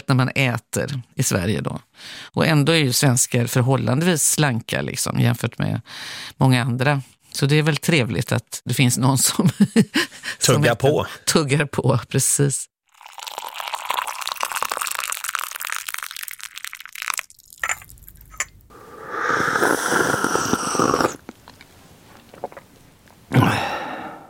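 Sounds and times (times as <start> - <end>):
speech: 0.1 - 12.7
person slurping a sip of fresh coffee: 13.0 - 22.8.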